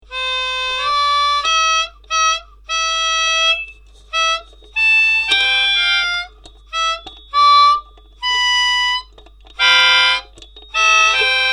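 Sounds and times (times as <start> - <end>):
trumpet: 0.0 - 11.5.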